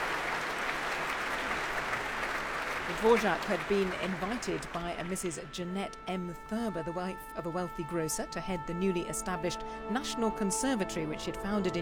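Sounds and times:
concert audience applause for an orchestra leader: 0.0s - 5.2s
speech: 2.9s - 11.8s.

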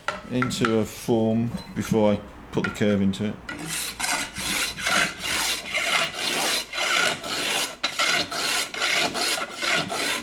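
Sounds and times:
speech: 0.3s - 4.0s
hand plane shaving a wooden stick: 3.5s - 10.2s.

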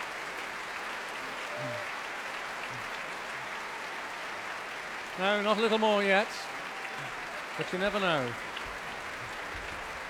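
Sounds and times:
warm applause from choir audience: 0.0s - 10.0s
speech: 5.2s - 8.5s.

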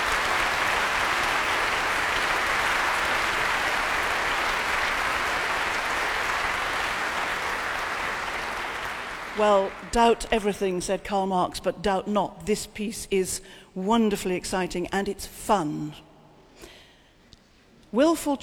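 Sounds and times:
audience applause in a concert hall: 0.0s - 10.0s
speech: 9.4s - 16.7s, 17.9s - 18.4s.

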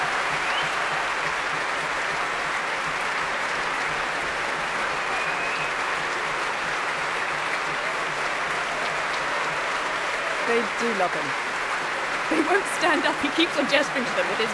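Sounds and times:
orchestra applauding: 0.0s - 14.5s
orchestra cheering: 0.0s - 14.5s
speech: 10.6s - 11.5s, 12.3s - 14.5s
laughter: 12.2s - 14.5s.

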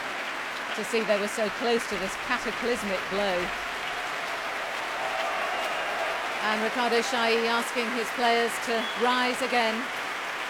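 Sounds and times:
concert audience applauding after an orchestral performance: 0.0s - 10.4s
speech: 0.8s - 3.7s, 6.4s - 10.0s.

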